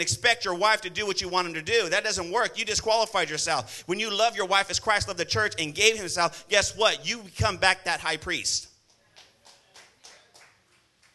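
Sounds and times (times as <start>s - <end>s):
speech: 0.0s - 8.7s
sparse audience clapping: 8.8s - 11.1s.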